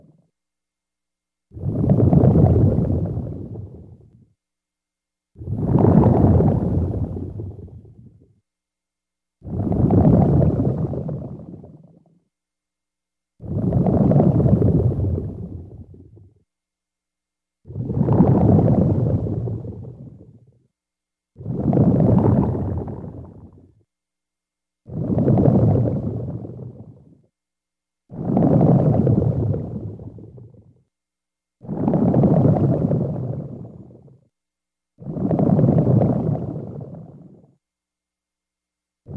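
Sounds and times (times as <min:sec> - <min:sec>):
bubbles underwater: 0:01.5 - 0:04.2, 0:05.4 - 0:08.3, 0:09.4 - 0:12.2, 0:13.4 - 0:16.4, 0:17.7 - 0:20.5, 0:21.4 - 0:23.8, 0:24.9 - 0:27.2, 0:28.1 - 0:30.8, 0:31.6 - 0:34.2, 0:35.0 - 0:37.4.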